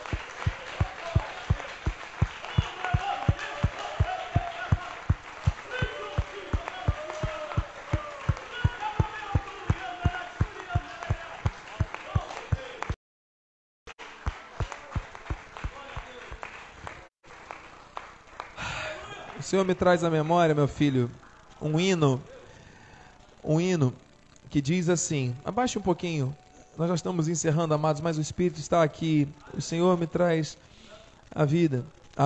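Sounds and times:
rhythmic audience clapping: 0.0s - 13.0s, 14.0s - 20.7s
speech: 19.5s - 22.3s, 23.5s - 30.7s, 31.4s - 32.2s.

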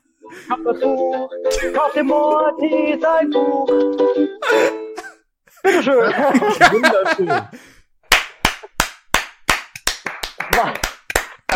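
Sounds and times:
speech: 0.3s - 4.8s, 5.6s - 7.7s, 10.6s - 10.8s
laughter: 4.4s - 7.6s
clapping applause: 8.1s - 11.5s.

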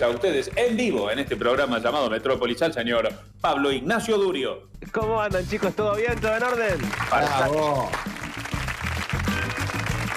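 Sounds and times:
speech: 0.0s - 8.2s
audience applause: 6.2s - 10.1s.

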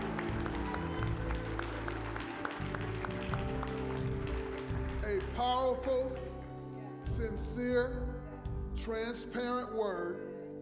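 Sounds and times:
audience hand clapping: 0.0s - 6.6s
speech: 5.4s - 6.3s, 7.2s - 8.1s, 8.8s - 10.2s.

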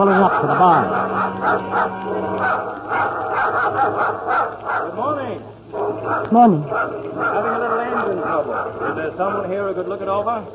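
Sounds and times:
speech: 0.0s - 2.7s, 3.8s - 10.5s
dog growling on a small bait barge: 0.0s - 10.0s.

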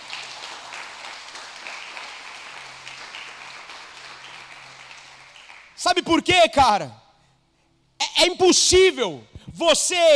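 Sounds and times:
audience applause: 0.0s - 5.8s
speech: 5.8s - 7.0s, 8.2s - 10.1s.

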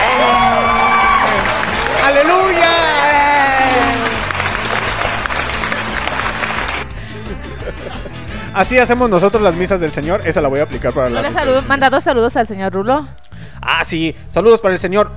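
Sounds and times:
cheering: 0.0s - 6.8s
applause: 0.0s - 7.2s
laughter: 1.3s - 8.8s
speech: 8.6s - 15.1s.

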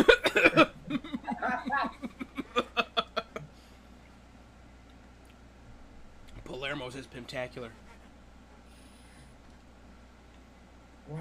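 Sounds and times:
harsh choking coughs: 0.0s - 0.8s
laughter: 0.0s - 3.5s
speech: 6.9s - 8.0s.

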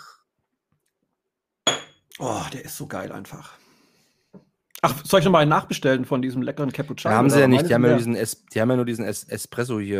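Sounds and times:
glass clink: 1.7s - 2.0s
speech: 2.2s - 3.6s, 4.8s - 9.9s.

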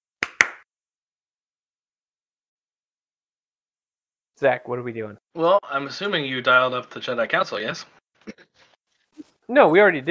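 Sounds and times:
hand claps: 0.2s - 0.7s
speech: 4.4s - 8.5s, 9.5s - 10.0s.

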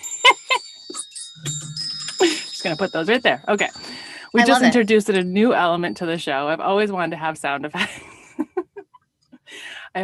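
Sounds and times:
set of chimes being played: 0.0s - 6.0s
speech: 2.2s - 8.1s.

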